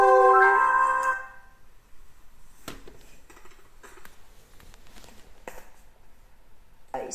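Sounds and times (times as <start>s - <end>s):
alto singing alleluia: 0.0s - 1.5s.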